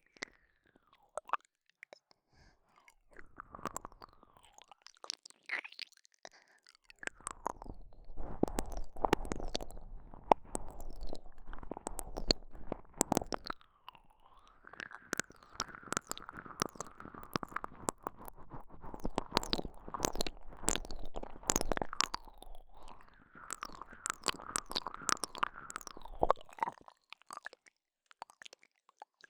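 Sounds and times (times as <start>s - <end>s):
ear licking: 7.0s - 26.8s.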